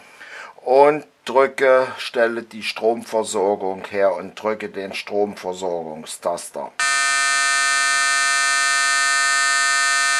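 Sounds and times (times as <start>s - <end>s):
speech: 0.7s - 6.9s
electronic foghorn sound effect: 6.8s - 10.1s.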